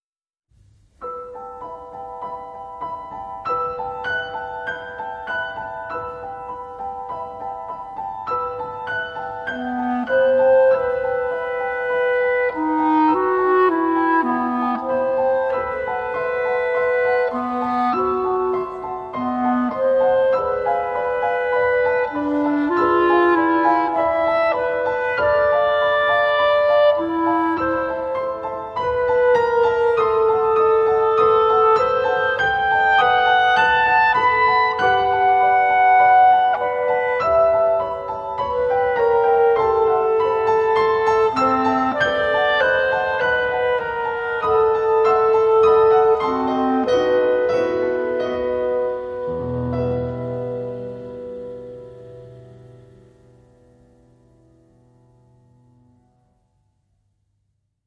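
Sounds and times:
piano: 0.5s - 57.8s
clarinet: 1.0s - 53.5s.

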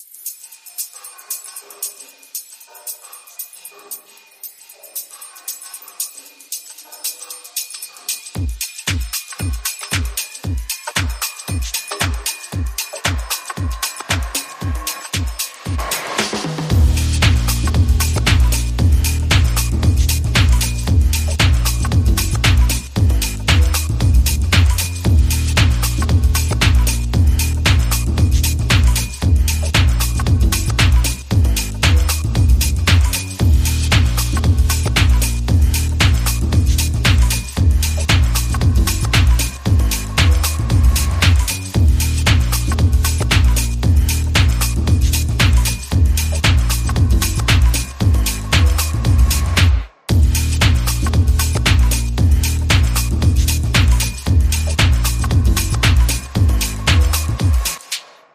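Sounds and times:
drums: 8.4s - 58.3s
bass: 16.6s - 57.8s.

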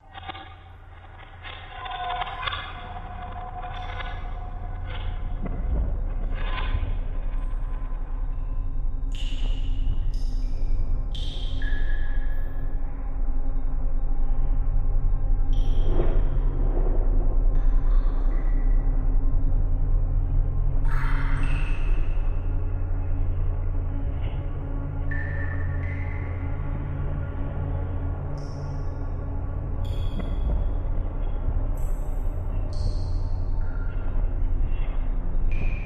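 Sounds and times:
cavern ambience: 0.0s - 35.8s.

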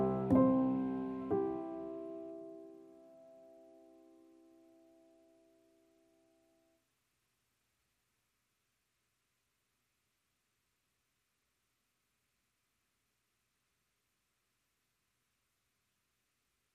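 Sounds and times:
piano: 0.0s - 6.6s.

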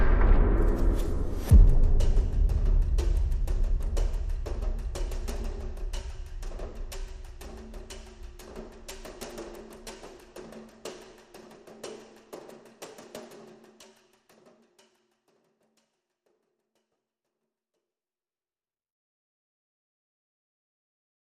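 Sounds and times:
drum effects: 0.0s - 13.5s.

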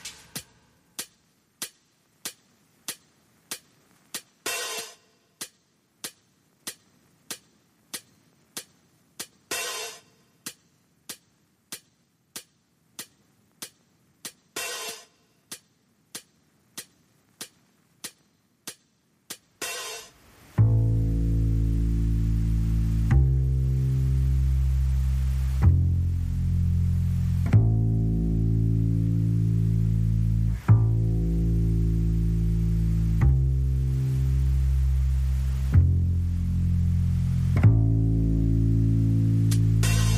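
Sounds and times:
drums: 0.0s - 40.1s
bass: 20.5s - 40.1s.

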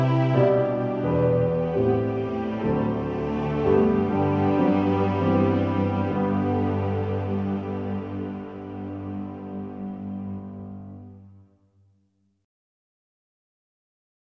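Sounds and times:
strings: 0.0s - 11.4s.

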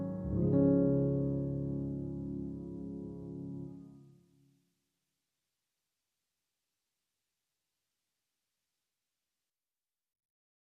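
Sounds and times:
dramatic piano music: 0.0s - 4.0s.

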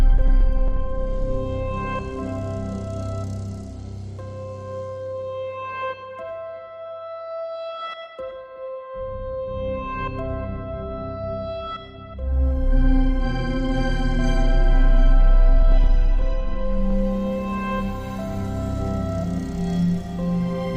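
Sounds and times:
divine ambient drone: 0.0s - 5.5s, 10.4s - 20.7s.

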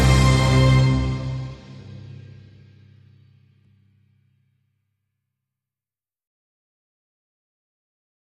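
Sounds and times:
epic future music, light version: 0.0s - 2.8s.

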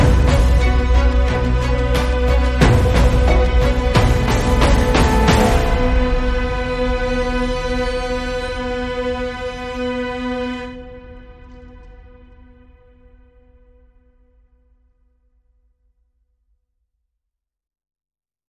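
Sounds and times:
piano with no low end: 0.0s - 13.4s.

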